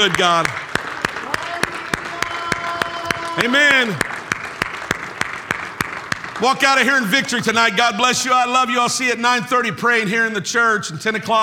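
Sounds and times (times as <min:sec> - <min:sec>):
speech: 0:00.0 - 0:00.6, 0:03.4 - 0:04.1, 0:06.4 - 0:11.4
congregation clapping hands in praise during a church service: 0:00.0 - 0:08.8.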